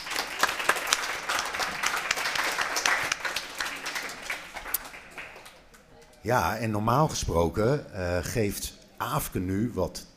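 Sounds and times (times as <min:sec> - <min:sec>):
audience applause: 0:00.0 - 0:06.2
speech: 0:06.2 - 0:10.1.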